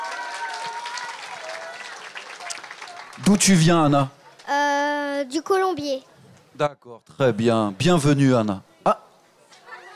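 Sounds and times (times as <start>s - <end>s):
audience applause: 0.0s - 3.8s
speech: 3.2s - 4.6s, 5.3s - 9.0s.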